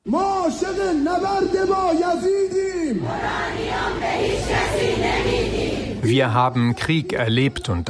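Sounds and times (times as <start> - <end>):
speech: 0.1 - 7.8
crowd chanting a slogan at a pro-regime rally in Iran: 2.9 - 7.0
broad roar of mixed shouting from a rally crowd in Iran: 3.0 - 6.0.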